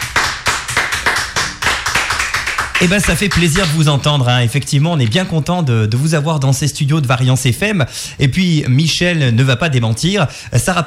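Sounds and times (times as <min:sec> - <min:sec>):
applause: 0:00.0 - 0:03.8
speech: 0:02.8 - 0:10.8.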